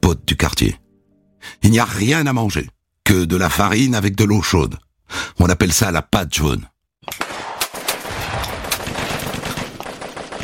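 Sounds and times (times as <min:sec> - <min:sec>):
speech: 0:00.1 - 0:00.8, 0:01.4 - 0:07.2
automatic weapon gunfire: 0:07.2 - 0:10.4
grenade and artillery blasts: 0:07.2 - 0:10.4.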